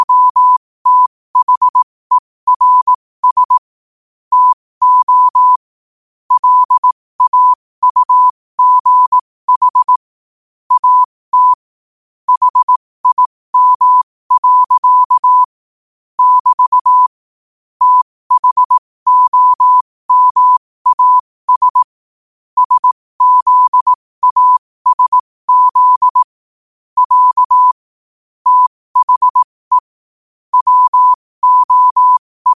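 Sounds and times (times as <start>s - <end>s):
morse code at 5 wpm: 0.0s - 1.8s, 2.5s - 3.7s, 4.3s - 5.6s, 6.3s - 10.0s, 10.7s - 11.6s, 12.3s - 15.5s, 16.2s - 17.1s, 17.8s - 22.0s, 22.6s - 26.4s, 27.0s - 27.8s, 28.4s - 29.9s, 30.5s - 32.5s.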